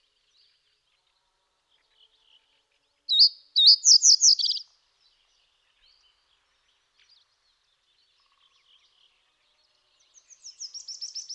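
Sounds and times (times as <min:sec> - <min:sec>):
common reed bunting Emberiza schoeniclus calling: 0:03.1 - 0:04.6.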